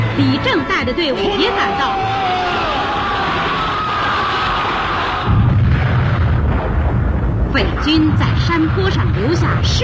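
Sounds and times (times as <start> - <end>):
speech: 0.2 - 2.6, 7.6 - 9.8
battle explosions: 2.5 - 9.8
battle gunfire: 3.3 - 9.8.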